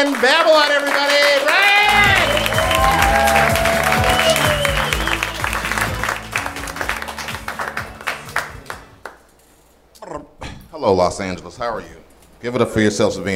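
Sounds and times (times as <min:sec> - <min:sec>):
speech: 0:00.0 - 0:01.6, 0:10.8 - 0:13.3
audience applause: 0:00.0 - 0:09.2
cheers and voices: 0:01.5 - 0:05.8.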